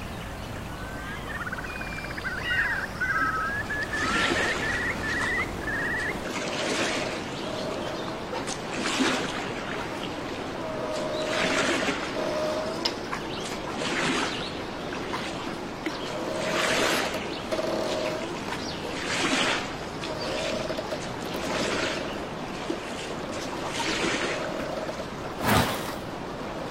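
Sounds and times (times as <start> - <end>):
bird chirps: 0.0 - 6.2
outdoor nature ambience: 0.0 - 26.7.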